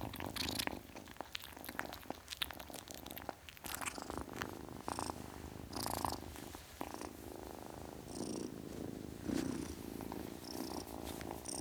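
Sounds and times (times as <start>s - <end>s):
ten-week-old kitten purring: 0.0s - 11.5s.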